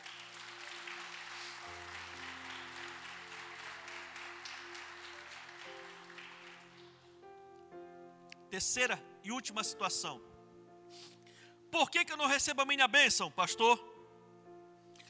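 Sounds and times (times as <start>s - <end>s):
audience applause: 0.0s - 7.1s
speech: 8.5s - 10.3s, 11.7s - 13.9s.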